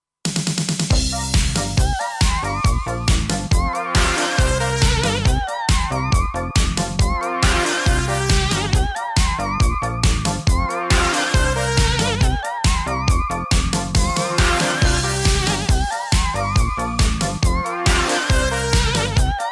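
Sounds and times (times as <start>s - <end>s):
soul music: 1.0s - 19.4s.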